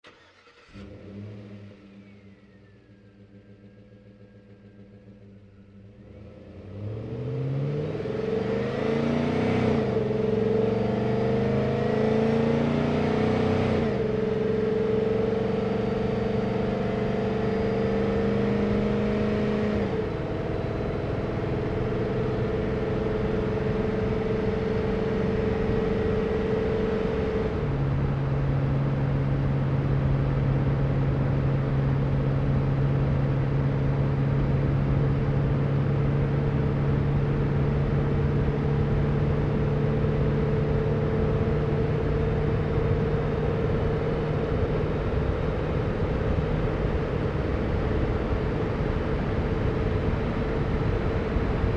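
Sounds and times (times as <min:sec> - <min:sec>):
GMC Savana truck driving fast recorded onboard: 0:00.2 - 0:51.7.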